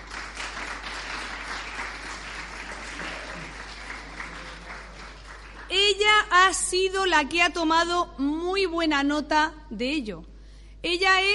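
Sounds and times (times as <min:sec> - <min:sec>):
audience applause: 0:00.0 - 0:05.7
speech: 0:06.2 - 0:11.3.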